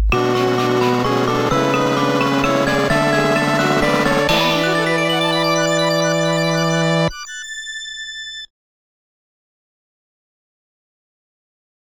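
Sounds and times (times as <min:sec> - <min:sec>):
all rounds clear game jingle: 0:00.1 - 0:08.4.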